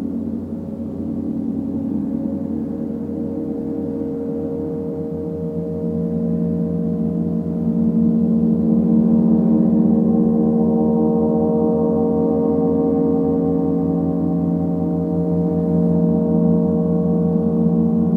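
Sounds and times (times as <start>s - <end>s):
gong bath humming: 0.0s - 18.1s.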